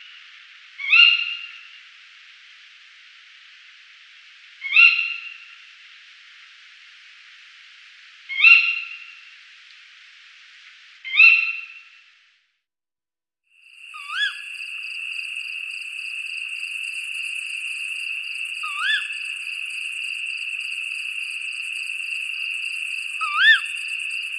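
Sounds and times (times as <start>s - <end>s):
tawny owl calls: 0.8s - 1.8s, 4.6s - 5.6s, 8.3s - 9.2s, 11.1s - 11.9s, 13.9s - 24.3s.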